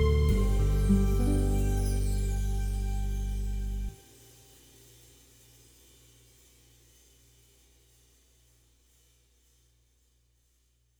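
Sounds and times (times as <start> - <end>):
drum kit: 0.2 - 3.8.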